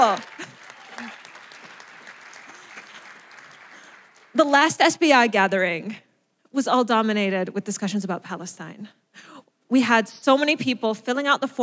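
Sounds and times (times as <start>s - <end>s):
speech: 0.0s - 0.4s, 4.4s - 11.6s
audience applause: 0.0s - 4.4s.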